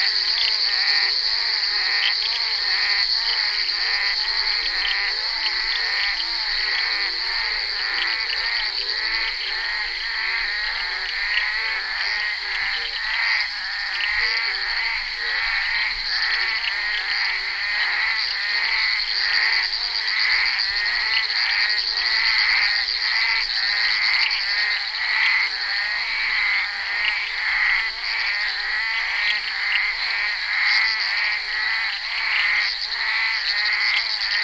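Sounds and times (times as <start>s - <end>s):
bullfrog chorus croaking: 0.0s - 34.4s.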